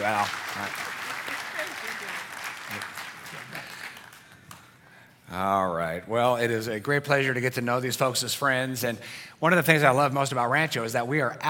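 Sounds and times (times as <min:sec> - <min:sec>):
speech: 0:00.0 - 0:01.0, 0:01.6 - 0:03.7, 0:05.3 - 0:11.4
audience applause: 0:00.0 - 0:04.6.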